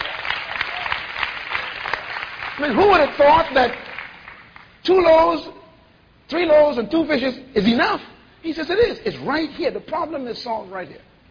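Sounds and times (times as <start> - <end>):
audience applause: 0.0 - 4.7
speech: 2.6 - 3.8, 4.8 - 5.6, 6.3 - 11.1.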